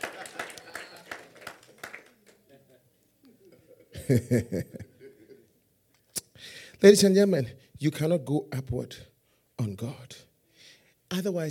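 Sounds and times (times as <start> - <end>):
scattered audience clapping: 0.0 - 2.7
loud chuckling laughter: 0.0 - 5.6
speech: 4.1 - 4.9, 6.8 - 10.3, 11.1 - 11.4.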